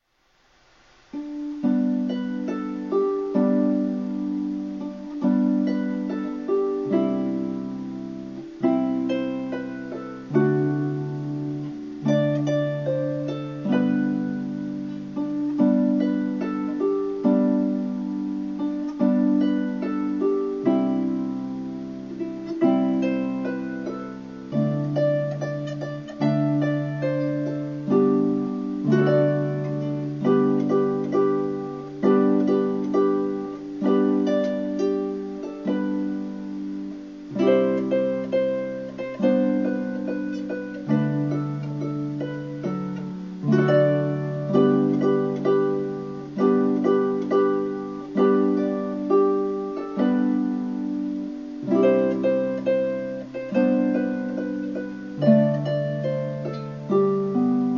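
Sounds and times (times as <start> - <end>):
Christmas song: 0.0 - 57.7.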